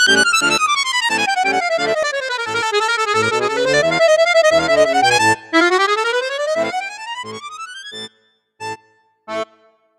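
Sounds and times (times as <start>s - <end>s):
Bugari 580 ARS C accordion on piccolo flute register: 0.0s - 9.9s.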